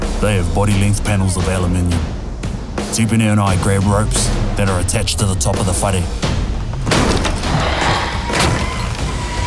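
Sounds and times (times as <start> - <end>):
speech: 0.2 - 2.2, 2.9 - 6.4
walls being battered and breaking: 6.2 - 9.3.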